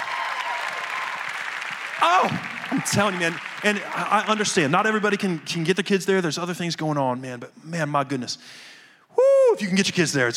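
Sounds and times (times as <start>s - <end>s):
church audience clapping: 0.0s - 6.2s
speech: 2.0s - 8.7s, 9.6s - 10.3s.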